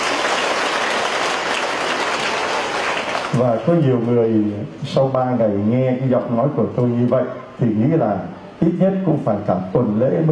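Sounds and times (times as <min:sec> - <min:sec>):
crowd clapping: 0:00.0 - 0:03.7
speech: 0:03.3 - 0:10.3.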